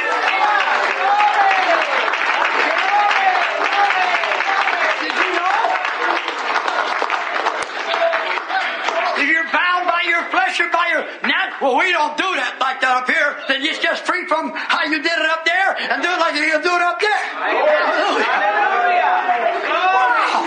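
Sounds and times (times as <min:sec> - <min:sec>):
audience clapping hands: 0:00.0 - 0:12.0
speech: 0:11.7 - 0:19.7.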